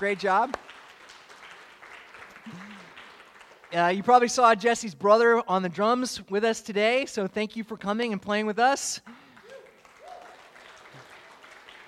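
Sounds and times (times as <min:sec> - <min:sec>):
speech: 0:00.0 - 0:00.8, 0:02.5 - 0:02.9, 0:03.7 - 0:09.2
audience round of applause: 0:00.0 - 0:04.1, 0:09.1 - 0:11.8.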